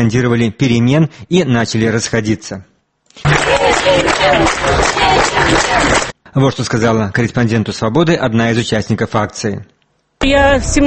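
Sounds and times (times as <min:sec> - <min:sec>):
speech: 0:00.0 - 0:10.8
crowd of protesters clapping hands: 0:03.1 - 0:06.2.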